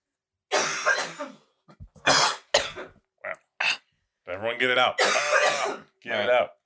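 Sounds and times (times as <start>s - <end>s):
person choking cough from drink down the wrong pipe: 0.5s - 3.0s, 5.0s - 5.9s
gasping catches of breath: 3.6s - 3.8s
speech: 4.4s - 6.6s.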